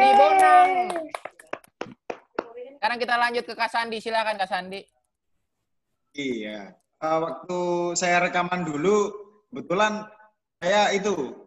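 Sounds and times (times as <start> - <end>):
hand clapping: 0.0 - 2.6
speech: 2.8 - 4.9, 6.1 - 11.4.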